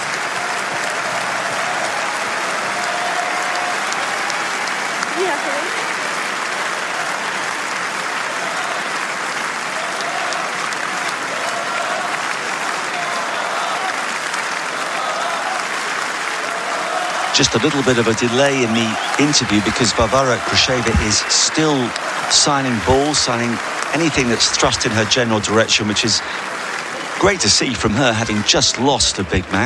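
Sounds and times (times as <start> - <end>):
audience applause: 0.0 - 29.6
laughter: 16.8 - 29.6
speech: 17.4 - 26.5, 27.2 - 29.6.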